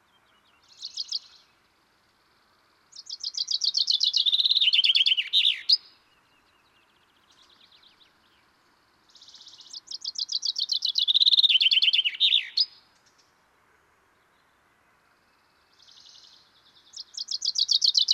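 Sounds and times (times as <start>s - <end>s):
common chaffinch Fringilla coelebs singing descending trilled phrases: 0.7s - 1.4s, 3.0s - 5.9s, 9.2s - 12.8s, 16.9s - 18.1s.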